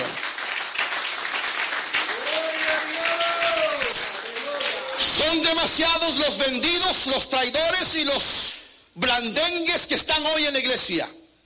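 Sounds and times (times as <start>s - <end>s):
audience applauding: 0.0s - 5.7s
speech: 5.3s - 8.4s, 9.0s - 11.2s.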